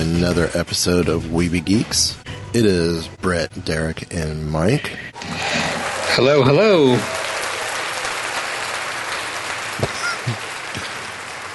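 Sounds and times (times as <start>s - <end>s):
speech: 0.2s - 5.2s, 6.1s - 7.2s
applause: 5.6s - 11.5s.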